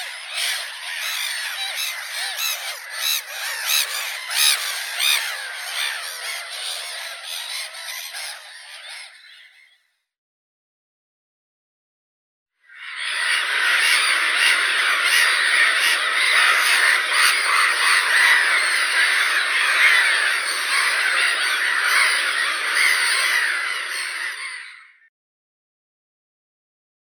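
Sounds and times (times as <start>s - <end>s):
black-headed gull Larus ridibundus: 0.0s - 9.5s, 12.9s - 25.0s.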